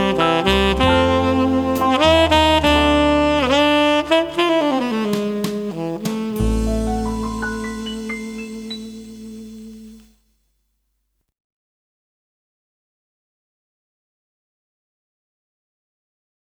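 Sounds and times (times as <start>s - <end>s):
saxophone: 0.0s - 10.2s.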